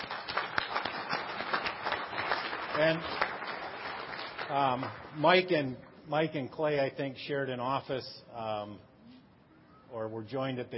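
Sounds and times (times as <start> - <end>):
audience applause: 0.0 - 5.1
speech: 2.8 - 3.2, 4.5 - 8.9, 9.9 - 10.7.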